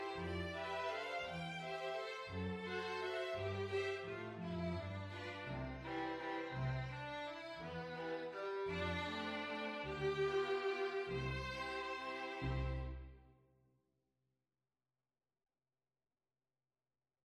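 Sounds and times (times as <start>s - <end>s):
string ensemble: 0.0s - 13.2s.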